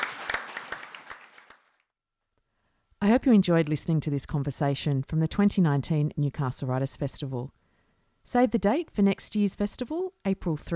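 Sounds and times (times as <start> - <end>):
audience applause: 0.0 - 1.8
speech: 3.0 - 7.6, 8.2 - 10.7.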